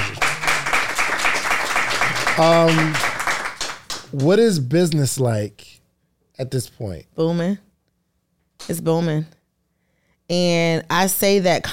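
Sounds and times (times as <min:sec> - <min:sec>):
hands clapping: 0:00.0 - 0:05.0
speech: 0:02.4 - 0:03.1, 0:04.1 - 0:05.6, 0:06.4 - 0:07.6, 0:08.7 - 0:09.4, 0:10.3 - 0:11.7.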